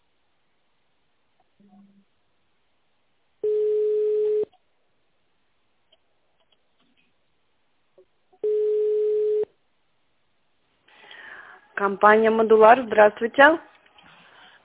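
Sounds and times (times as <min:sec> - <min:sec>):
speech: 0:01.6 - 0:02.2, 0:11.8 - 0:13.7
telephone line tone: 0:03.4 - 0:04.5, 0:08.4 - 0:09.5.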